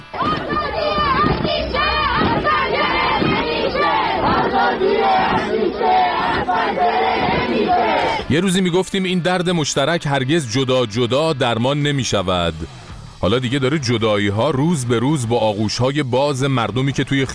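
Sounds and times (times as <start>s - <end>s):
protesters chanting a slogan: 0.0s - 8.5s
speech: 7.7s - 17.3s.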